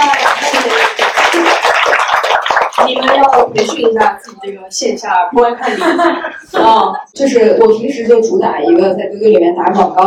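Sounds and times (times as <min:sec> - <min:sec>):
clapping: 0:00.0 - 0:04.4
speech: 0:02.9 - 0:10.0
laughter: 0:05.6 - 0:06.9.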